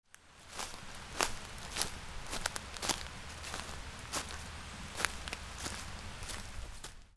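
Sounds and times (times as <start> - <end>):
footsteps: 0.2 - 7.1.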